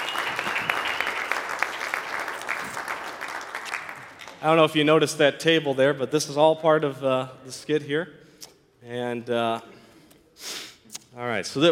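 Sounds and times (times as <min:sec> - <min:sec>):
audience applause: 0:00.0 - 0:04.2
speech: 0:04.4 - 0:08.2, 0:08.8 - 0:09.7, 0:11.2 - 0:11.7.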